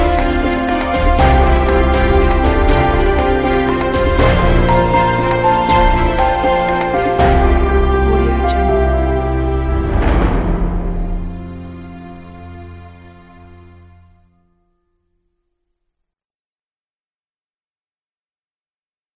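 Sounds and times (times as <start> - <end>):
inspiring emotional uplifting piano music: 0.0 - 14.8.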